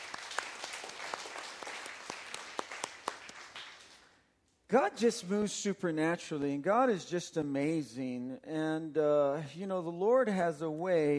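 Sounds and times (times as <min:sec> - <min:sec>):
audience clapping hands: 0:00.0 - 0:04.2
speech: 0:04.7 - 0:11.1.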